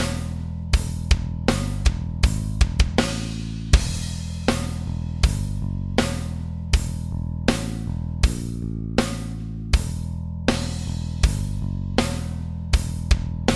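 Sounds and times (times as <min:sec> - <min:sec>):
metal riff backing track loop: 0:00.0 - 0:11.6, 0:12.2 - 0:13.5.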